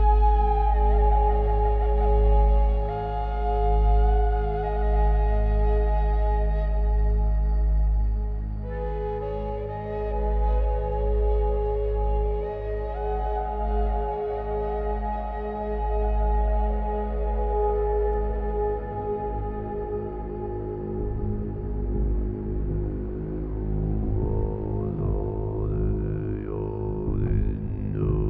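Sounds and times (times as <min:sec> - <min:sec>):
flute: 0:00.0 - 0:28.2.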